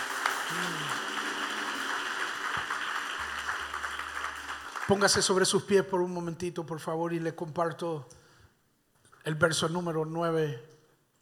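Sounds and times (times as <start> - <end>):
audience applause: 0.0 - 5.4
speech: 4.9 - 8.2, 9.2 - 10.7.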